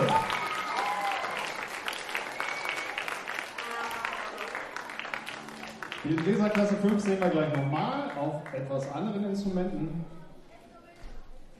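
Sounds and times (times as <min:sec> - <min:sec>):
audience applause: 0:00.0 - 0:09.2
speech: 0:06.0 - 0:10.2.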